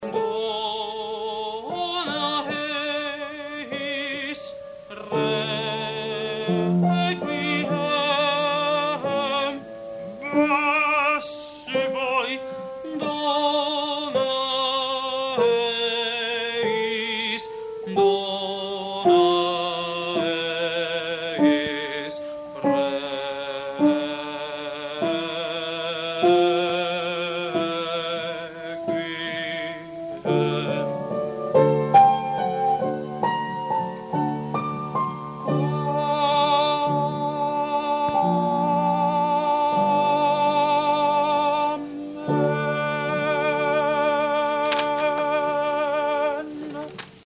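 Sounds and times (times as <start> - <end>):
sopranos singing: 0.0 - 47.2.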